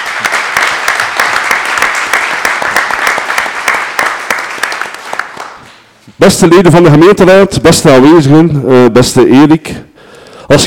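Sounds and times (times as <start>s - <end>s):
thunderous applause: 0.0s - 5.6s
speech: 6.2s - 9.9s, 10.5s - 10.6s.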